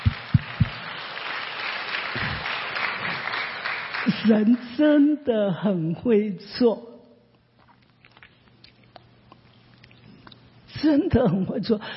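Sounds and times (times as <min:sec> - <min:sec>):
audience applauding: 0:00.0 - 0:04.3
speech: 0:04.2 - 0:06.9, 0:10.9 - 0:11.9.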